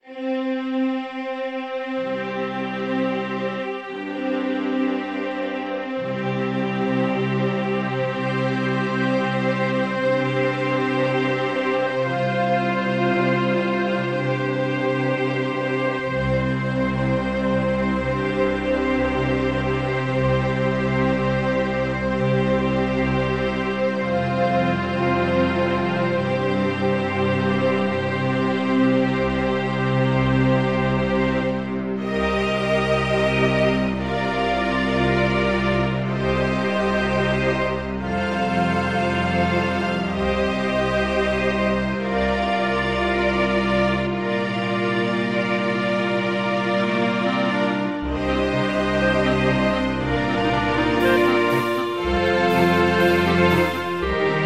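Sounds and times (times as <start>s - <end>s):
resynthesized strings: 0.0s - 54.4s.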